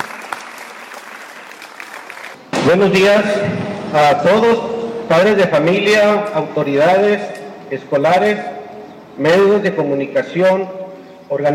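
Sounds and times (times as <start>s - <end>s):
audience applause: 0.0s - 2.4s
speech: 2.7s - 8.6s, 9.2s - 11.5s.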